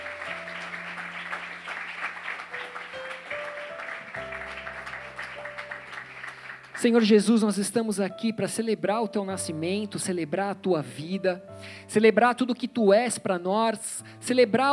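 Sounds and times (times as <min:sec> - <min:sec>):
sustained organ or keyboard notes: 0:00.0 - 0:06.7
audience applause: 0:00.0 - 0:06.9
speech: 0:06.8 - 0:14.7.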